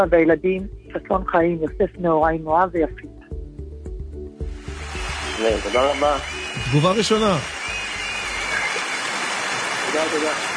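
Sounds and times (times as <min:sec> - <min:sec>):
speech: 0:00.0 - 0:03.2, 0:05.4 - 0:07.6, 0:09.9 - 0:10.5
applause: 0:05.1 - 0:10.5.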